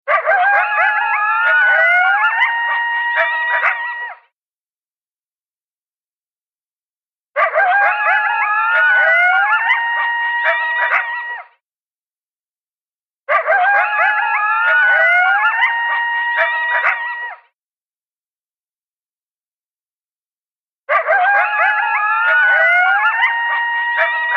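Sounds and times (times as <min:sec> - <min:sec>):
coyotes yipping and howling: 0:00.1 - 0:04.2, 0:07.4 - 0:11.5, 0:13.3 - 0:17.5, 0:20.9 - 0:24.3.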